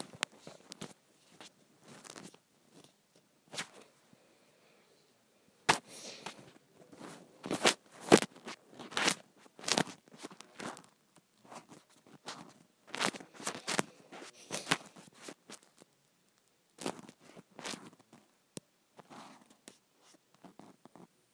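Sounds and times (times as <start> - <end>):
scrunchie sounds: 0.0 - 2.9, 5.7 - 15.9, 16.8 - 18.3.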